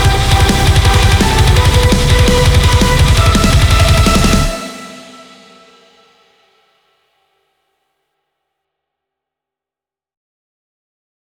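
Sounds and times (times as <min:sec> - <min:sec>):
battle background music from a game: 0:00.0 - 0:05.3.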